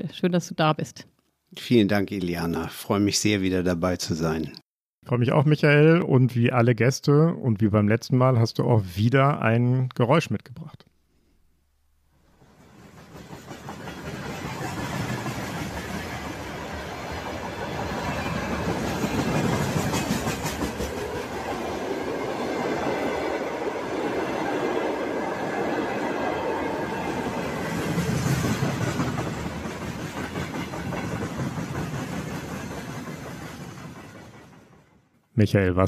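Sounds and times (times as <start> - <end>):
speech: 0.0 - 10.9, 35.4 - 35.8
rhythmic rail clacking: 12.4 - 35.0
freight train wagons carrying tanks and military equipment rumbling: 12.4 - 35.1.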